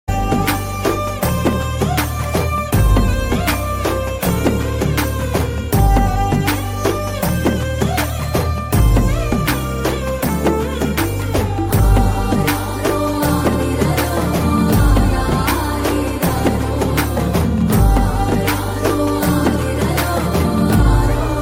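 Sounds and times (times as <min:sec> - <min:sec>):
Telugu songs: 0:00.1 - 0:21.3.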